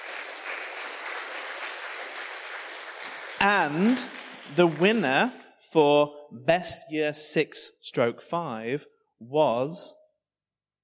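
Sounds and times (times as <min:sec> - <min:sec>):
audience applause: 0:00.0 - 0:05.3
speech: 0:03.4 - 0:10.0.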